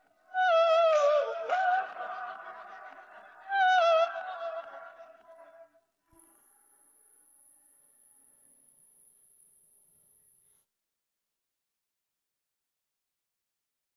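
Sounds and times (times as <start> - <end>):
person singing: 0.0 - 5.5.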